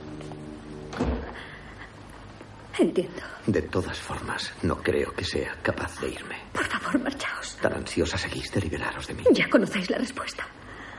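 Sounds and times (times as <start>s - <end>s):
door being closed: 0.8s - 1.5s
speech: 2.8s - 10.6s.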